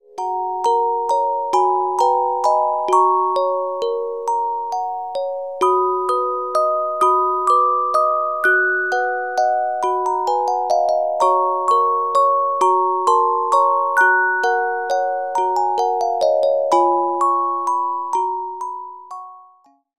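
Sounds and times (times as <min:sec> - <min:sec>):
carillon music box melodies: 0:00.0 - 0:19.8.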